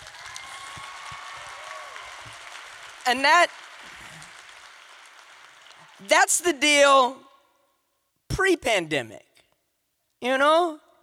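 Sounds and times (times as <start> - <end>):
audience applause: 0.0 - 6.4
speech: 3.1 - 3.6, 6.0 - 7.2, 8.4 - 9.2, 10.2 - 10.8.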